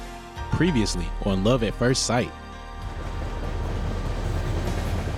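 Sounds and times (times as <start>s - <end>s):
speech: 0.6s - 2.4s
train rumbling: 2.7s - 5.1s.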